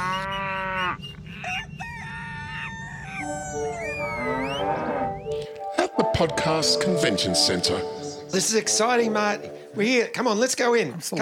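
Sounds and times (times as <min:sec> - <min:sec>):
low mooing: 0:00.0 - 0:05.2
rooster crowing: 0:00.0 - 0:05.3
bird cries: 0:00.0 - 0:05.5
speech: 0:06.2 - 0:11.1.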